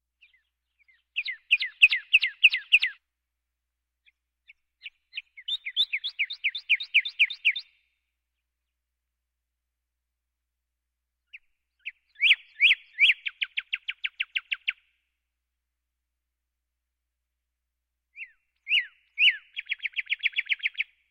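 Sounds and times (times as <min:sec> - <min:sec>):
birds: 0:00.2 - 0:03.1, 0:04.0 - 0:08.8, 0:11.2 - 0:15.1, 0:18.1 - 0:21.0.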